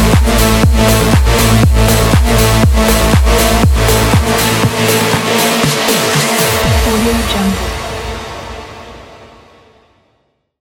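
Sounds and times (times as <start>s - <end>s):
aggressive minimal techno: 0.0s - 7.9s.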